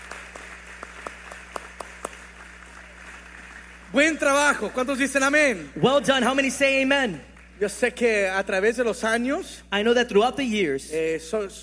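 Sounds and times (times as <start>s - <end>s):
sparse audience handclaps for graduates: 0.0s - 3.9s
speech: 3.9s - 11.6s.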